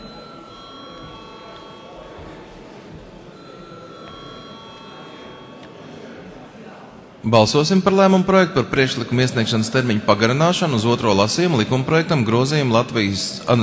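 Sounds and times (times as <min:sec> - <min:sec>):
parliamentary chamber bell ringing before voting: 0:00.0 - 0:06.3
low murmur of voices: 0:00.0 - 0:13.6
speech: 0:07.2 - 0:13.6.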